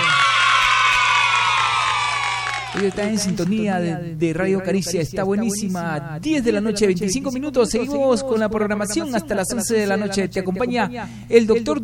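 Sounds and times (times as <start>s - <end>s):
crowd cheering with shouts and whoops: 0.0s - 3.6s
speech: 2.8s - 11.8s.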